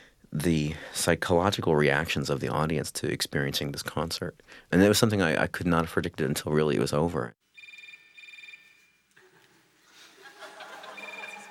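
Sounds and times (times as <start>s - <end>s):
speech: 0.3s - 7.4s
mobile phone ringing: 7.5s - 9.1s, 10.9s - 11.4s
laughter: 9.2s - 11.4s.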